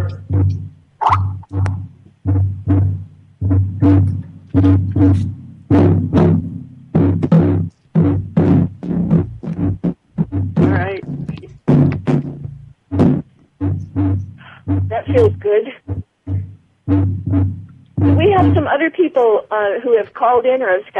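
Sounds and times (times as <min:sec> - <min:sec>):
two-beat heartbeat rhythm on drums: 0:00.0 - 0:18.7
speech: 0:19.6 - 0:20.9.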